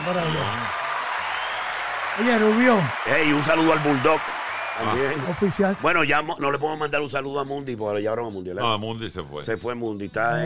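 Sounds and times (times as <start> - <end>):
applause: 0.0 - 6.6
speech: 0.1 - 0.8, 2.2 - 10.4.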